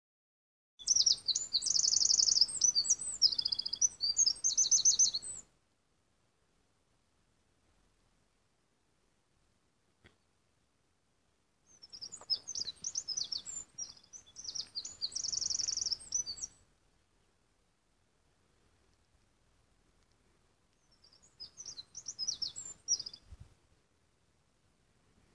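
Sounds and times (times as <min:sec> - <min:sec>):
Eurasian wren song: 0:00.8 - 0:05.5, 0:11.7 - 0:16.7, 0:20.8 - 0:23.4.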